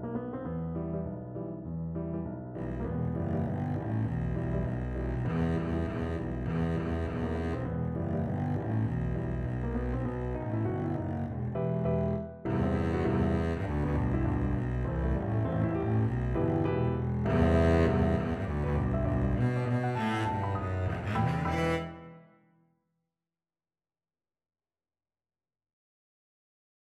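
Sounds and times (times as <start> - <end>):
double bass: 0.7 - 22.1.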